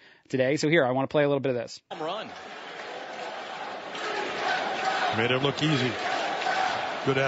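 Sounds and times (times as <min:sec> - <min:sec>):
speech: 0:00.3 - 0:02.6, 0:05.1 - 0:06.1, 0:07.0 - 0:07.2
baseball crowd chanting during a game: 0:01.9 - 0:07.2.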